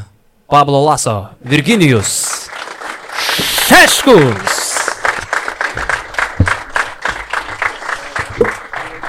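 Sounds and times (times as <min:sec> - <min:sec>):
speech: 0:00.5 - 0:02.4, 0:03.7 - 0:04.6
audience applause and crowd noise: 0:01.8 - 0:09.0.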